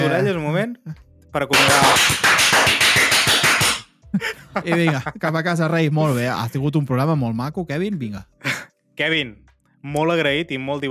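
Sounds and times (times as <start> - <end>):
speech: 0.0 - 3.1, 4.1 - 10.8
applause: 1.5 - 3.8
laughter: 4.1 - 5.4.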